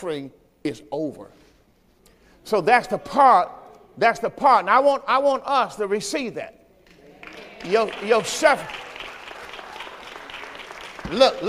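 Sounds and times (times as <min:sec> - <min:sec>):
speech: 0:00.0 - 0:01.5, 0:02.4 - 0:06.6, 0:07.3 - 0:08.8, 0:11.1 - 0:11.4
audience clapping: 0:06.8 - 0:11.4.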